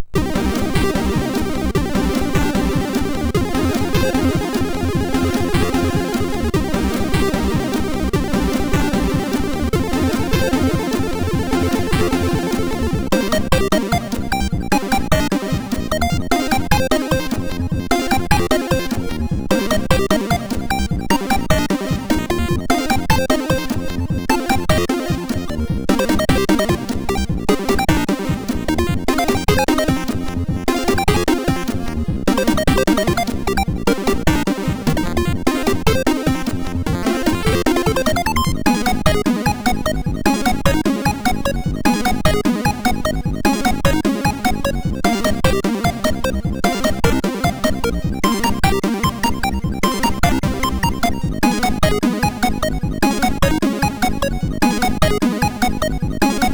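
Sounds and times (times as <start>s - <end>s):
chiptune game music on a MOS6581R4 chip: 0.0s - 56.5s.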